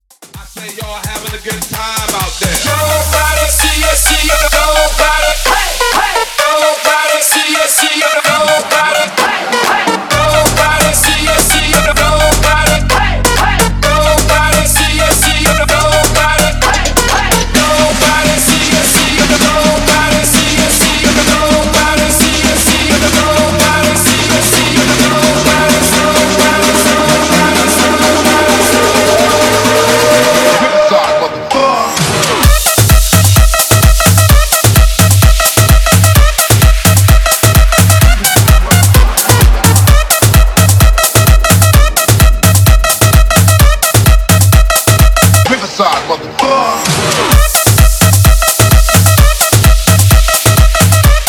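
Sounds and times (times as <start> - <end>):
bootleg mixshow dance music: 0.0 - 51.2.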